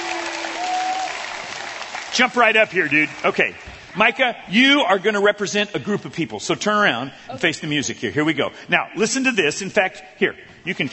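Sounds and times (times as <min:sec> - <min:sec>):
audience applause: 0:00.0 - 0:04.3
speech: 0:02.2 - 0:10.9.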